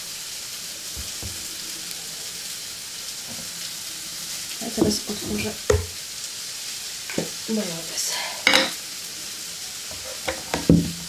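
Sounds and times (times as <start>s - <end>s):
food sizzling in a frying pan: 0.0s - 11.0s
speech: 4.6s - 5.9s, 7.5s - 8.3s
utensil knocking on pan: 4.8s - 6.0s, 9.9s - 11.0s.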